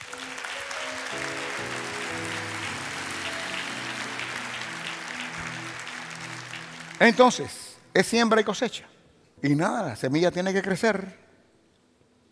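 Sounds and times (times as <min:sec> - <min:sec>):
audience applause: 0:00.0 - 0:07.7
speech: 0:07.0 - 0:11.2.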